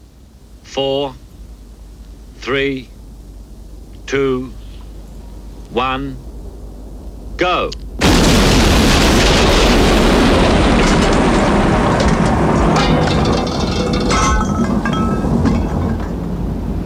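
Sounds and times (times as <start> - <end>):
speech: 0.7 - 1.2, 2.4 - 2.9, 4.1 - 4.6, 5.7 - 6.3, 7.4 - 7.8
explosion blowing doors off: 8.0 - 16.7.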